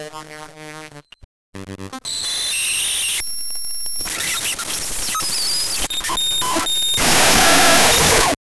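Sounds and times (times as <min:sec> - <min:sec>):
simulated AI malfunction glitch sounds: 0:02.1 - 0:08.4.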